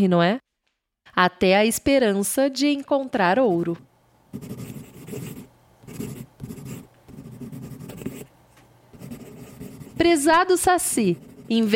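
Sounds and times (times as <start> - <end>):
speech: 0.0 - 0.4, 1.1 - 5.2, 10.0 - 11.7
handwriting a letter: 4.4 - 8.3, 8.9 - 10.2, 10.9 - 11.7.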